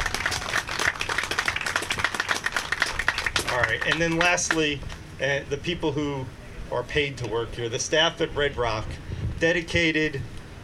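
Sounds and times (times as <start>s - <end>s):
audience applause for volunteers: 0.0s - 4.6s
speech: 3.6s - 10.3s.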